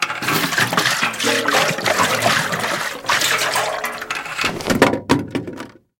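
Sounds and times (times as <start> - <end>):
metal basins falling: 0.0 - 5.4
water spilling: 0.1 - 4.6.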